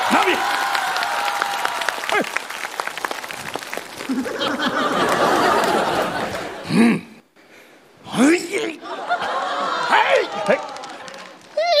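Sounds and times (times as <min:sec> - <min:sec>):
audience applause: 0:00.0 - 0:06.6, 0:09.3 - 0:11.7
scattered laughter and voices: 0:04.1 - 0:07.2, 0:08.6 - 0:11.3.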